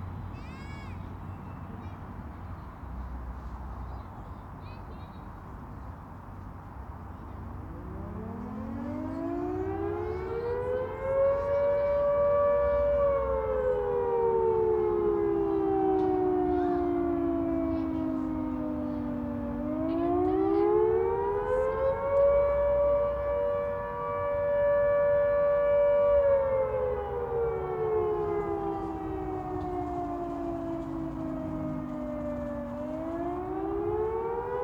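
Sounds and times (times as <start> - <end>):
siren: 7.1 - 34.6.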